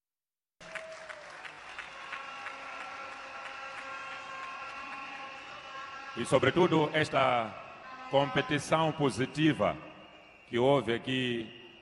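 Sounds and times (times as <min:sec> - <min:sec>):
applause: 0:00.6 - 0:06.5
speech: 0:06.2 - 0:09.9, 0:10.5 - 0:11.6.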